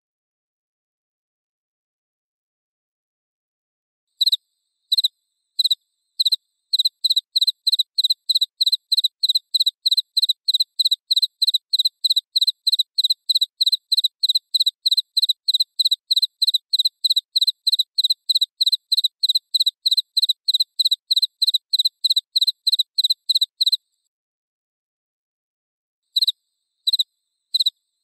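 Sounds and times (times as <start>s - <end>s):
cricket chirping: 4.2s - 23.8s, 26.2s - 28.0s.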